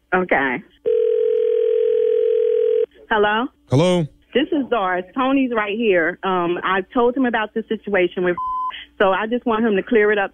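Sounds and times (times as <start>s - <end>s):
speech: 0.1s - 1.0s, 3.1s - 10.3s
telephone dial tone while setting up a three-way call: 0.9s - 2.9s.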